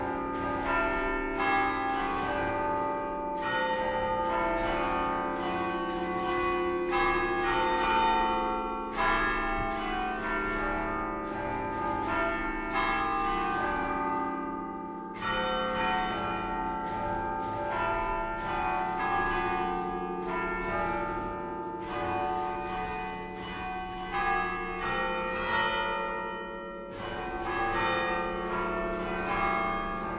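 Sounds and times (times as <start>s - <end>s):
church bells ringing in Sant Olcese, Liguria: 0.0s - 30.1s.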